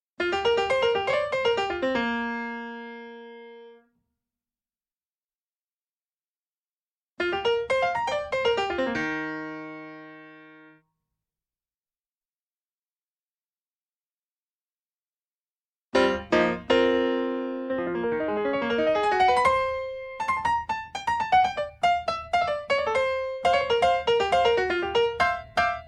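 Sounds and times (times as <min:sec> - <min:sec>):
piano: 0:00.2 - 0:03.9, 0:07.2 - 0:10.8, 0:16.0 - 0:25.8.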